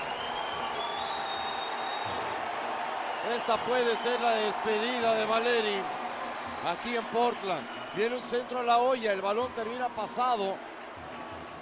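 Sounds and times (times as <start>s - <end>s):
faint whistles: 0.0s - 2.3s
large stadium crowd applauding a substitute: 0.0s - 11.5s
speech: 3.3s - 6.0s, 6.6s - 10.7s.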